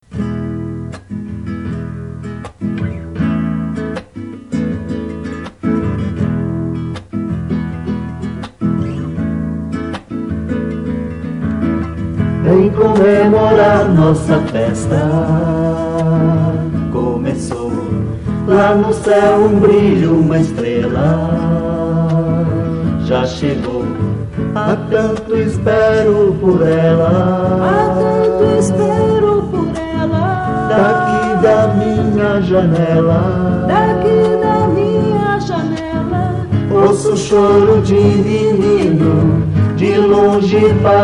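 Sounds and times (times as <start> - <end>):
acoustic guitar: 0.0 - 41.0
voices singing: 12.4 - 41.0.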